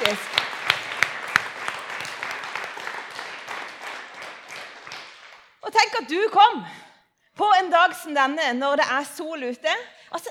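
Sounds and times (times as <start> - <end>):
audience applause for a children's choir: 0.0 - 5.5
speech: 5.7 - 10.2.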